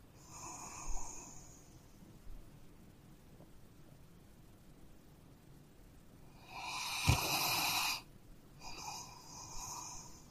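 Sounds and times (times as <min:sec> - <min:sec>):
dog snoring: 0:00.2 - 0:01.6, 0:06.3 - 0:08.0, 0:08.6 - 0:10.3.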